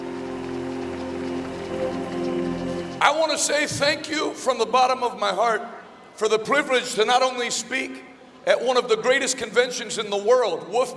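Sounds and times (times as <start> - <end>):
sustained low humming tones: 0.0 - 3.0
audience clapping: 0.0 - 3.5
speech: 3.0 - 10.9.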